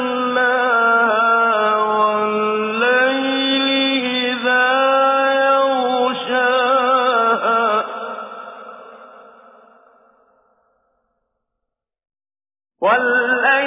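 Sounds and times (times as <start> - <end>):
Quranic recitation with tajweed: 0.0 - 9.4, 12.8 - 13.6.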